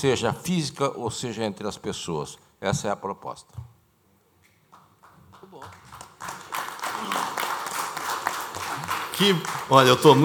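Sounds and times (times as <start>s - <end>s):
speech: 0.0s - 3.7s, 9.2s - 10.2s
audience applause: 5.0s - 10.2s.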